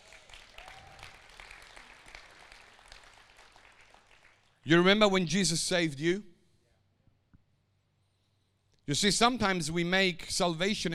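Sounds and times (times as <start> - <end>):
audience clapping: 0.0 - 4.6
speech: 4.7 - 6.3, 8.9 - 10.9.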